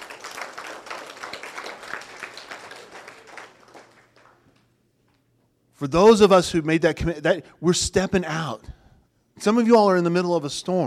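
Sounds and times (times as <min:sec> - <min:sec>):
audience applauding: 0:00.0 - 0:04.7
speech: 0:05.8 - 0:08.8, 0:09.4 - 0:10.8.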